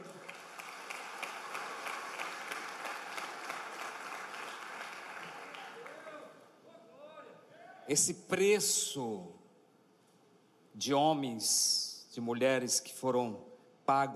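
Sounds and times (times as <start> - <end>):
applause: 0.0 - 6.4
speech: 7.9 - 9.4, 10.8 - 14.1.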